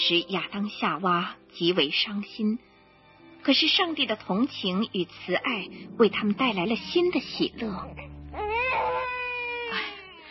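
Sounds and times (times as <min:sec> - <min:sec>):
speech: 0:00.1 - 0:02.7, 0:03.4 - 0:08.8
newborn baby crying: 0:07.4 - 0:10.2.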